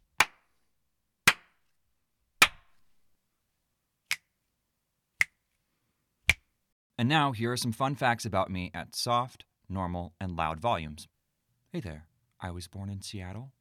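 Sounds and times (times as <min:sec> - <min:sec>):
hand claps: 0:00.2 - 0:00.5, 0:01.3 - 0:01.6, 0:02.4 - 0:02.7
finger snaps: 0:05.2 - 0:05.4, 0:06.3 - 0:06.5
speech: 0:07.0 - 0:11.1, 0:11.7 - 0:13.6.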